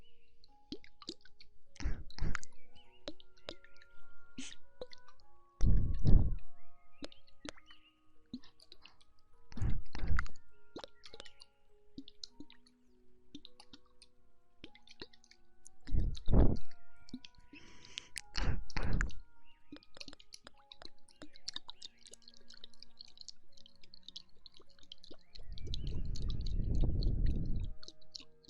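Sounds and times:
wet ear-eating mouth sounds: 1.0 - 2.5, 8.4 - 10.4, 15.8 - 19.2, 19.8 - 28.3.

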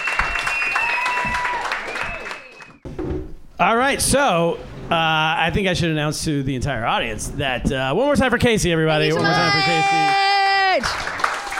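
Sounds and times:
comedy show audience applauding and cheering to welcome a comedian: 0.0 - 2.8, 9.6 - 11.5
speech: 3.6 - 10.2.

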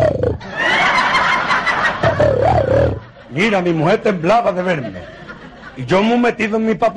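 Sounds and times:
man imitating a tiger roar: 0.0 - 0.4, 2.1 - 3.0
laughter: 0.4 - 6.3
speech: 3.4 - 5.2, 5.8 - 6.9.

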